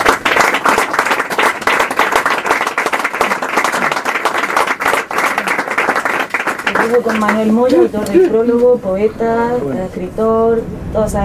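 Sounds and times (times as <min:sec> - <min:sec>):
audience applause: 0:00.0 - 0:08.4
speech: 0:06.9 - 0:11.2.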